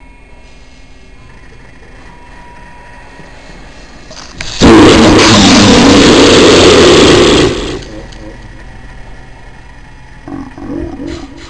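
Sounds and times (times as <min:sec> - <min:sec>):
hellish voices: 0:04.5 - 0:08.6, 0:10.2 - 0:11.4.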